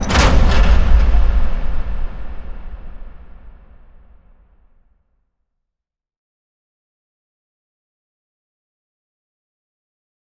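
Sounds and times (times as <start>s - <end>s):
door closing: 0.0s - 4.2s.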